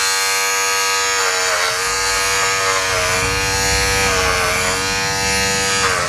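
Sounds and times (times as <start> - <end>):
electric razor buzzing: 0.0 - 6.0.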